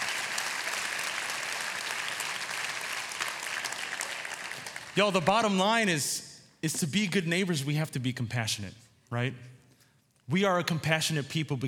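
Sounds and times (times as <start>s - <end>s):
round of applause: 0.0s - 5.3s
speech: 5.0s - 9.5s, 10.3s - 11.6s.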